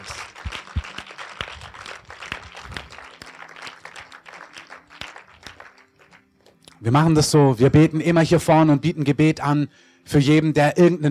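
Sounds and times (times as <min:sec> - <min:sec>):
audience applause: 0:00.0 - 0:06.4
speech: 0:06.8 - 0:11.0.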